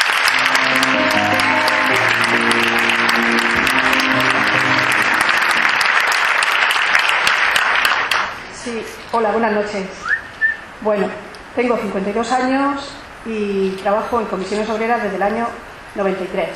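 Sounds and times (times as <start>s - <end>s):
audience applause: 0.0s - 8.4s
speech: 9.2s - 10.1s, 10.8s - 16.5s.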